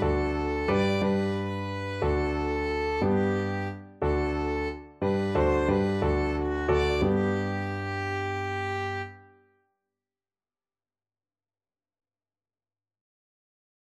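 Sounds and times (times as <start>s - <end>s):
violin: 0.0s - 9.4s.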